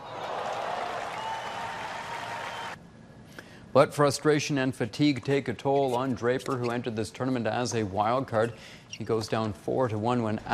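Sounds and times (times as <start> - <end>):
tennis crowd applauding: 0.0 - 2.8
speech: 3.7 - 10.5.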